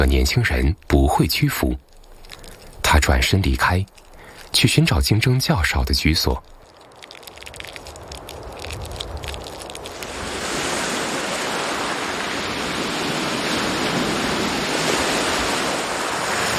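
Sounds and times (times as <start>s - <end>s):
speech: 0.0s - 1.9s, 2.9s - 6.6s
sea waves washing into mangroves: 3.4s - 16.5s.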